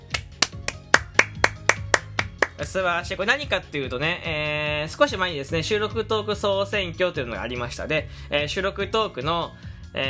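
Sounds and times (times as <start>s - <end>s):
hand clapping: 0.0s - 2.7s
speech: 2.6s - 10.0s.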